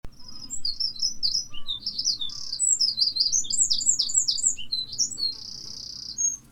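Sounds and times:
Eurasian wren singing: 0.1 - 6.5.

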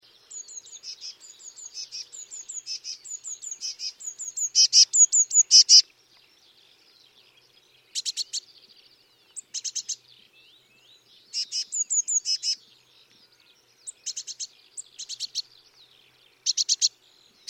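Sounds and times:
Eurasian blue tit calling: 0.3 - 5.8, 7.9 - 8.5, 9.4 - 10.0, 11.3 - 12.6, 13.9 - 15.5, 16.4 - 17.4.

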